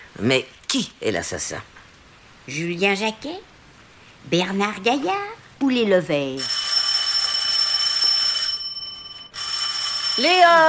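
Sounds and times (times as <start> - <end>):
speech: 0.2 - 1.8, 2.4 - 3.5, 4.2 - 6.6, 10.2 - 10.6
telephone ringing with a bell-like trill: 6.4 - 10.6.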